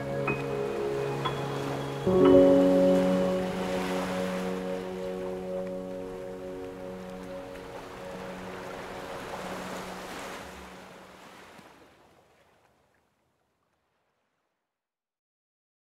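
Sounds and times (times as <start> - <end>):
piano piece: 0.0 - 11.0.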